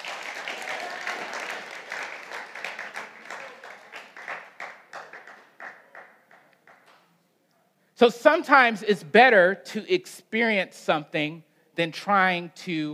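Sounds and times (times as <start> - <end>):
audience applause: 0.0 - 6.8
speech: 8.0 - 12.9.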